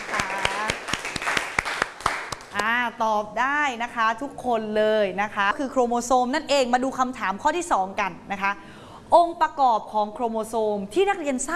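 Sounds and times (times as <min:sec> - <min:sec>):
applause: 0:00.0 - 0:02.7
speech: 0:03.0 - 0:11.5.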